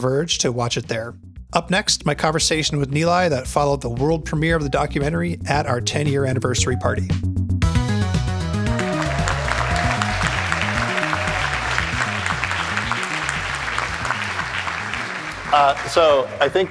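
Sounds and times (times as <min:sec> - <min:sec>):
speech: 0:00.0 - 0:07.3, 0:15.5 - 0:16.6
audience applause: 0:08.6 - 0:16.6.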